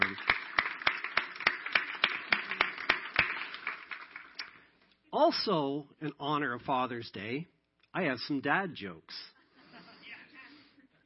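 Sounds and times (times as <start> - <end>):
crowd clapping: 0.0 - 4.7
speech: 5.2 - 9.3.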